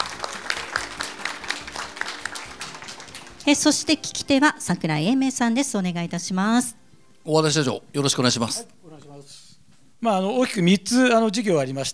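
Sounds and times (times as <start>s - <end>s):
crowd applause: 0.0s - 3.8s
speech: 3.5s - 8.8s, 10.0s - 11.9s.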